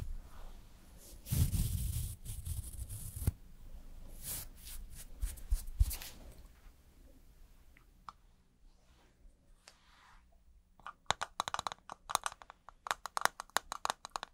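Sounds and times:
makeup and hair brushing and rustling: 0.0s - 3.4s, 4.1s - 6.7s, 8.7s - 10.4s
rapid irregular clicks and taps: 10.8s - 14.3s.

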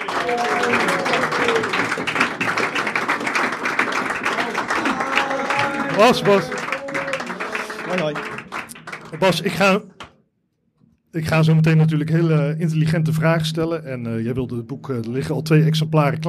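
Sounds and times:
audience applause: 0.0s - 9.9s
speech: 0.3s - 2.2s, 6.0s - 6.6s, 7.9s - 8.3s, 9.2s - 9.9s, 11.1s - 16.2s.

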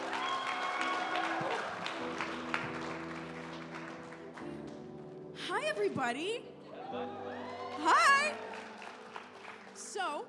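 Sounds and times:
audience applause welcoming a youth announcements team: 0.0s - 4.9s, 6.9s - 10.2s
speech: 5.6s - 8.5s, 10.0s - 10.2s.

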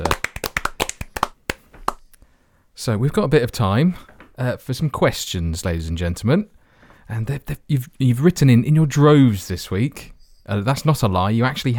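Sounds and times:
hand claps: 0.0s - 2.1s
speech: 2.8s - 11.7s.

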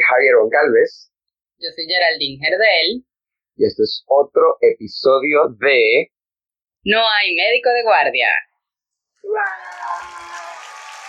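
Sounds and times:
speech: 0.4s - 6.2s, 6.8s - 8.5s, 9.2s - 10.4s
applause: 9.4s - 11.0s.

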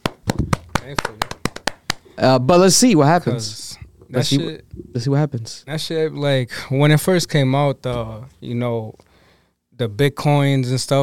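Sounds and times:
single person clapping: 0.0s - 2.1s
speech: 0.8s - 1.4s, 2.2s - 9.1s, 9.8s - 11.0s.

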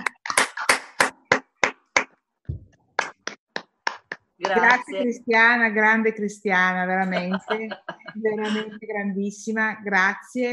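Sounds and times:
applause from participants on open microphones: 0.0s - 2.2s, 3.0s - 4.9s
speech: 4.4s - 10.5s
laughter: 7.0s - 8.8s.

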